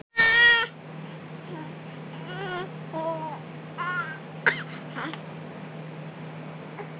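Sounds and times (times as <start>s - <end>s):
hungry baby girl crying: 0.2s - 0.7s, 1.5s - 4.2s.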